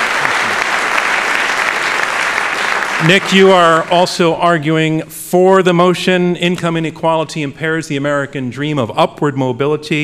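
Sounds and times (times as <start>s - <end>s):
debate audience applauding in welcome of a debater: 0.0s - 4.2s
speech: 3.0s - 10.0s.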